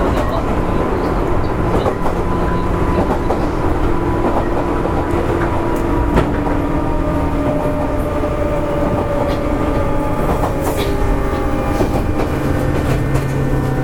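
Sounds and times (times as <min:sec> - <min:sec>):
JR West 201 series local train running on the Yamatoji line: 0:00.0 - 0:13.8.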